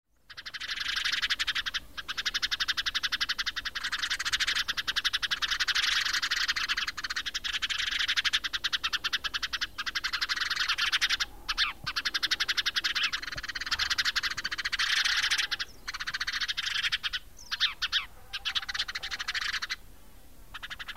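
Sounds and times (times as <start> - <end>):
Spanish sparrows chirping in a dense chorus: 0.1 - 20.9.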